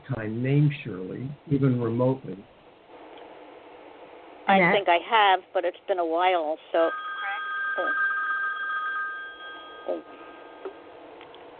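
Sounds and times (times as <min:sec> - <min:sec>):
speech: 0:00.1 - 0:02.6, 0:04.5 - 0:07.1, 0:07.8 - 0:08.1, 0:09.8 - 0:10.2
cell phone ringing with old-fashioned bell ringtone: 0:06.9 - 0:10.9.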